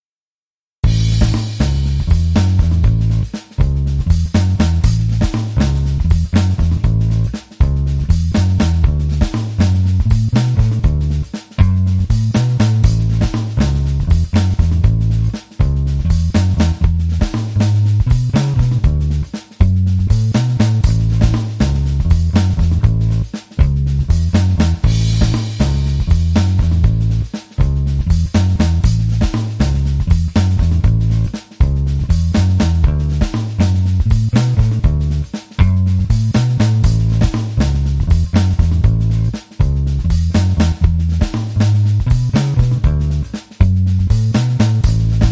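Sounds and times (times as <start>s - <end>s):
drum and bass music: 0.8s - 45.2s.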